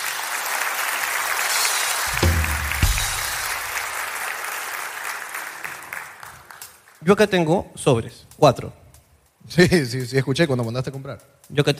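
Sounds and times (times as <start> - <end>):
audience applauding at a Spanish-speaking gathering: 0.0 - 7.0
brief low thumping sounds: 2.1 - 3.8
speech: 7.0 - 8.8, 9.5 - 11.7.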